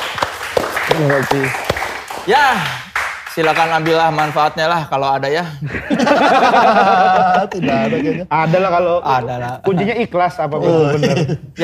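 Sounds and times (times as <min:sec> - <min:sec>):
applause: 0:00.0 - 0:04.7
speech: 0:01.0 - 0:01.6, 0:02.3 - 0:11.6
laughter: 0:05.6 - 0:08.7, 0:09.4 - 0:11.6.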